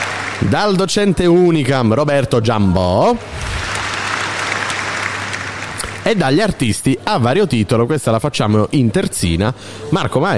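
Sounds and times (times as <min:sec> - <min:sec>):
audience applause: 0:00.0 - 0:00.8, 0:03.2 - 0:06.4
speech: 0:00.4 - 0:03.6, 0:06.0 - 0:10.3.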